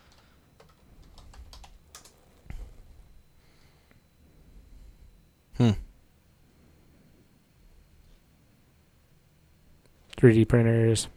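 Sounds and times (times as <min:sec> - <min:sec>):
computer keys clicking as a word is typed into Etsy search: 0:00.0 - 0:02.2
speech: 0:10.2 - 0:11.1.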